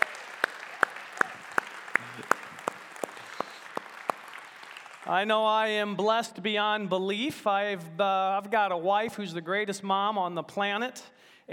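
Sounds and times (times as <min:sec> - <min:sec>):
audience clapping at a Mother's Day morning service: 0:00.0 - 0:06.0
speech: 0:05.1 - 0:11.5.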